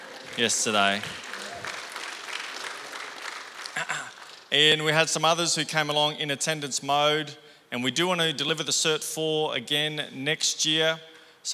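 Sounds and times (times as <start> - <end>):
audience applause: 0.0 - 4.5
speech: 0.4 - 1.2, 4.5 - 11.5.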